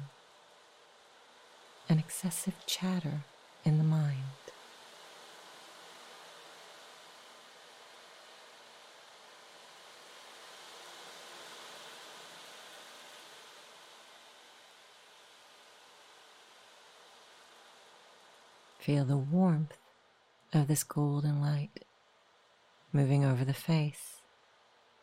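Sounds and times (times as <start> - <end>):
ocean waves washing: 0.0 - 21.4
speech: 1.9 - 4.3, 18.8 - 19.8, 20.5 - 21.9, 22.9 - 24.2.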